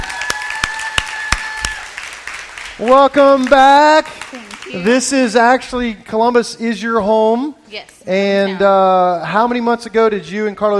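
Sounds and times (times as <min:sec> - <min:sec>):
audience applauding to welcome a guest: 0:00.0 - 0:05.4
speech: 0:02.8 - 0:10.7.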